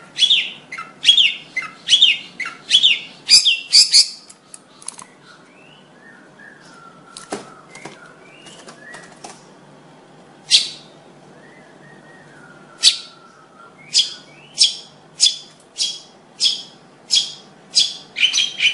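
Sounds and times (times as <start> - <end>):
bird singing high chirps: 0.1 - 6.8, 10.5 - 11.6, 12.8 - 18.7.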